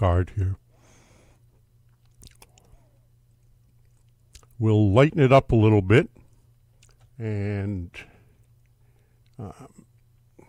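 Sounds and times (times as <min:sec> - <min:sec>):
speech: 0:00.0 - 0:00.6, 0:04.6 - 0:06.2, 0:07.2 - 0:08.1, 0:09.4 - 0:09.9
chewing food: 0:01.8 - 0:04.6, 0:06.7 - 0:07.1, 0:08.3 - 0:10.4.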